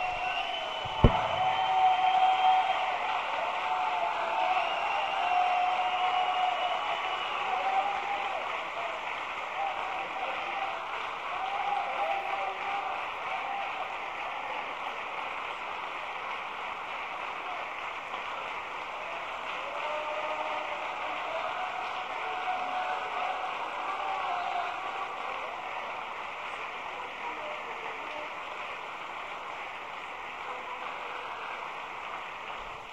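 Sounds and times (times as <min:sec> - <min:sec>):
audience applause: 0:00.0 - 0:32.9
sharp knock: 0:00.8 - 0:01.6.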